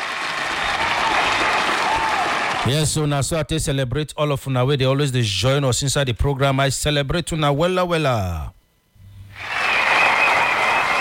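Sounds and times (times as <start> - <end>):
audience clapping: 0.0 - 2.8, 9.4 - 11.0
speech: 2.6 - 8.6.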